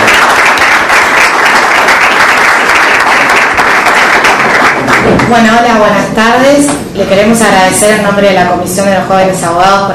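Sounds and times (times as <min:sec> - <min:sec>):
audience applause: 0:00.0 - 0:05.3
speech: 0:05.3 - 0:09.9.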